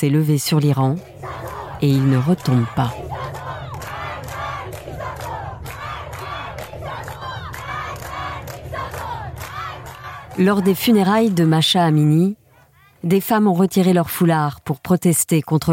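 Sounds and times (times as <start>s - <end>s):
speech: 0.0s - 3.0s, 10.4s - 12.4s, 13.0s - 15.7s
crowd chanting protest slogans: 0.5s - 13.0s.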